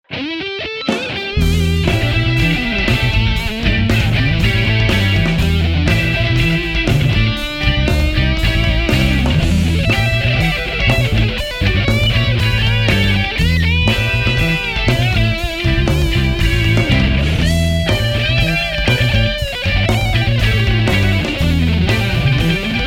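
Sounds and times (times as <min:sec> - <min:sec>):
funky fusion rock music: 0:00.0 - 0:22.8.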